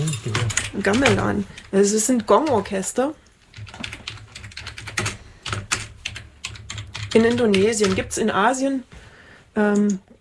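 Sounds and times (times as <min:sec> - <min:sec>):
rapid keyboard typing of a search: 0:00.0 - 0:02.9, 0:03.5 - 0:08.3
speech: 0:00.2 - 0:03.2, 0:07.2 - 0:09.0, 0:09.6 - 0:10.1.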